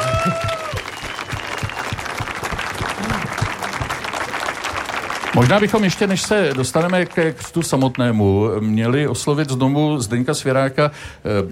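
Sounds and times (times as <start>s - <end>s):
audience applause: 0.0s - 8.4s
speech: 0.2s - 0.5s, 5.4s - 11.5s.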